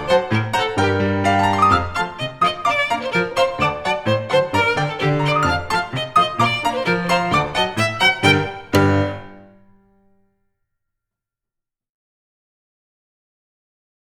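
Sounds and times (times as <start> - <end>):
instrumental violin and piano piece: 0.0 - 9.8.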